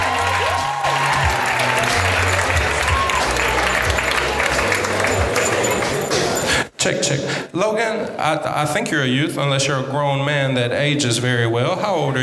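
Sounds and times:
audience applause: 0.0 - 6.6
speech: 6.8 - 12.2.

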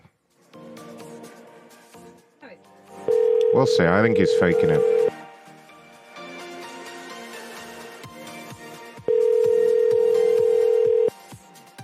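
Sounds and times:
telephone ringing tone on an outgoing call: 3.1 - 5.1, 9.1 - 11.2
speech: 3.6 - 5.0.

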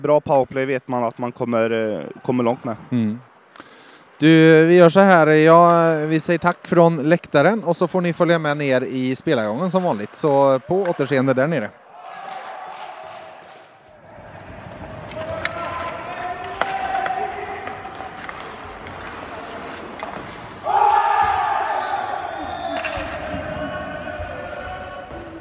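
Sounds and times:
speech: 0.0 - 11.8
crowd cheering at training session: 11.8 - 25.4.

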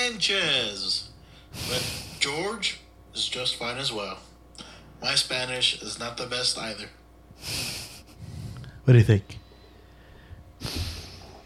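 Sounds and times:
speech: 0.2 - 7.8, 8.8 - 9.4, 10.6 - 10.9
heavy breathing through the nose: 1.2 - 2.2, 7.4 - 8.8, 9.4 - 11.4.

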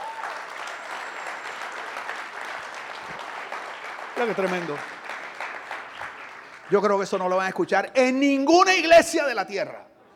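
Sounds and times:
audience applause: 0.0 - 7.0
speech: 4.2 - 5.0, 6.7 - 9.8.

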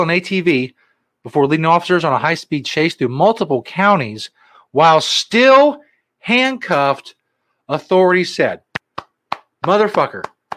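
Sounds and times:
speech: 0.0 - 8.6, 9.6 - 10.3
hand clapping in place of applause effect: 8.7 - 10.5.

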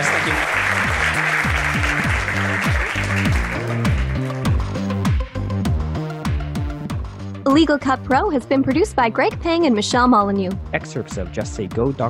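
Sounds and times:
audience applause: 0.0 - 4.7
steady rhythmic music track with pulsing bassline: 0.0 - 12.0
speech: 7.6 - 12.0.

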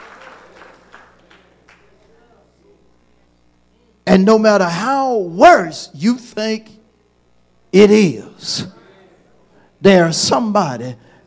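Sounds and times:
audience clapping: 0.0 - 2.2
speech: 4.1 - 6.8, 7.7 - 8.8, 9.8 - 11.2.

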